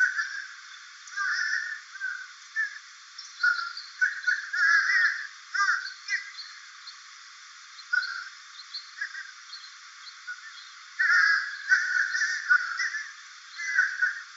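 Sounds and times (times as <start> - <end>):
crows cawing in a chorus: 0.0 - 0.6, 1.2 - 2.2, 3.4 - 6.3, 11.0 - 14.3.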